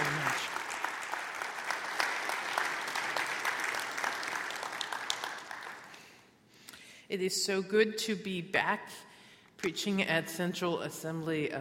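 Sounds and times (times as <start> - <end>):
church congregation at Central Assembly of God applauding a guest preacher: 0.0 - 6.2
speech: 7.1 - 11.6.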